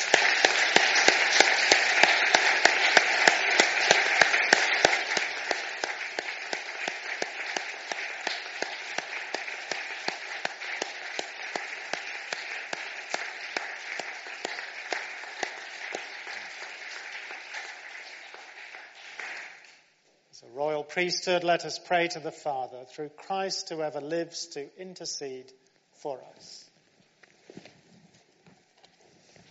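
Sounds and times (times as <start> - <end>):
audience applauding in a large room: 0.0 - 19.9
speech: 21.0 - 26.7.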